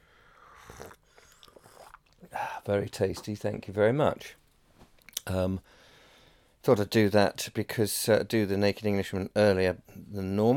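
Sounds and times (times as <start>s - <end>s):
person slurping morning tea or coffee from a mug: 0.5s - 2.3s
speech: 2.6s - 4.4s, 5.3s - 5.8s, 6.6s - 10.5s.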